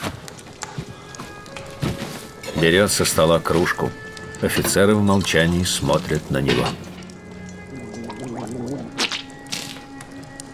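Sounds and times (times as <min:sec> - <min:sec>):
speech: 0:02.6 - 0:06.9
Cossack officer rinsing his mouth with water: 0:04.5 - 0:09.5
Cossack officer spitting water outside a barracks: 0:07.4 - 0:09.9.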